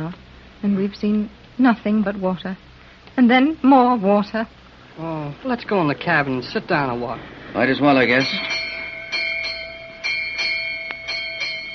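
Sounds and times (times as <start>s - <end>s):
speech: 0.1s - 8.6s
ship's bell striking eight bells: 7.7s - 11.7s.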